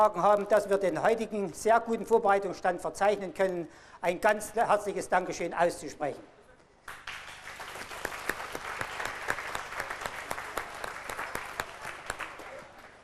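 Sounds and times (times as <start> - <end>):
speech: 0.0 - 7.0
audience applause at 600 Jahre Reitzenhain: 6.9 - 13.0.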